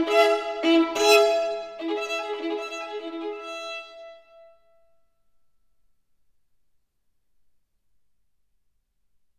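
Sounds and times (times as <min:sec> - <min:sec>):
solo violin caprice in E major: 0:00.0 - 0:04.6.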